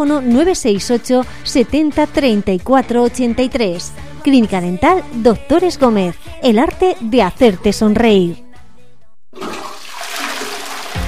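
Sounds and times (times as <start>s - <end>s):
speech: 0.0s - 8.4s
toilet flushing: 9.4s - 11.0s.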